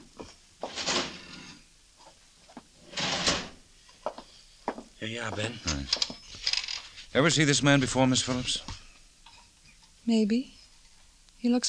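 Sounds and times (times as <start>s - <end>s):
drawer opening: 0.6s - 1.6s, 2.8s - 3.6s
speech: 5.0s - 6.2s, 7.1s - 8.8s, 10.1s - 10.6s, 11.4s - 11.6s.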